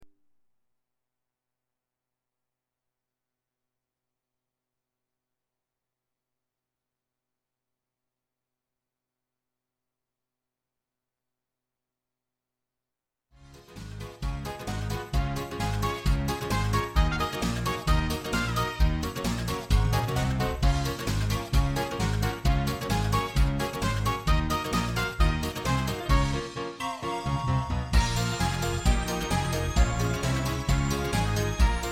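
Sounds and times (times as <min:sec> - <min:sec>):
music: 0:13.4 - 0:31.8.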